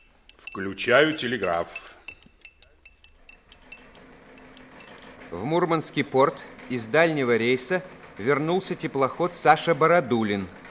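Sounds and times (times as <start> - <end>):
spoon clinking in a glass of tea: 0.0 - 5.0
speech: 0.5 - 2.0, 5.3 - 10.6.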